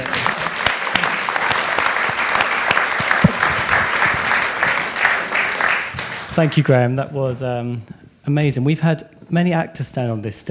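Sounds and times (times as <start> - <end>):
audience applause: 0.0 - 6.7
speech: 6.4 - 10.5.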